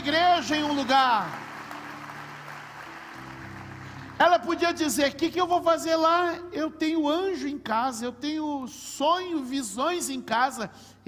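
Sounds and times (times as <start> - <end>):
speech: 0.0 - 1.5, 4.2 - 11.0
audience applauding: 0.0 - 4.3.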